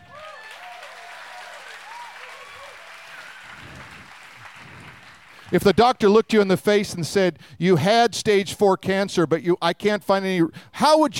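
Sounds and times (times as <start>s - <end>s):
scattered whoops and cheers: 0.0s - 5.0s
crowd clapping and applauding: 0.0s - 6.3s
speech: 5.5s - 11.1s.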